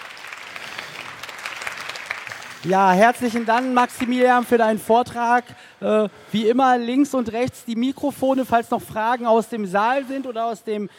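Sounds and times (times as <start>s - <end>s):
audience applause in a hall after a talk: 0.0s - 4.4s
speech: 2.6s - 10.9s.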